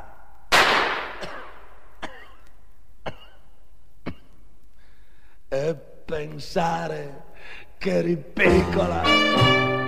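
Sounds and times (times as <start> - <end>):
gunshot: 0.5 - 1.6
speech: 5.6 - 9.7.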